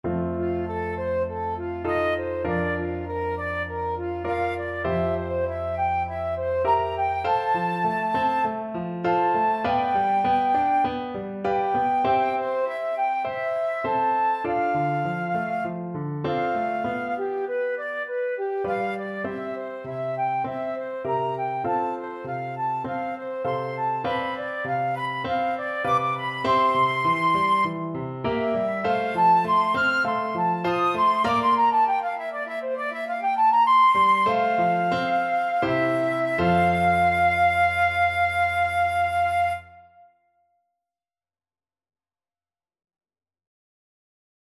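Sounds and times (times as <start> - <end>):
flute: 0.1 - 40.6.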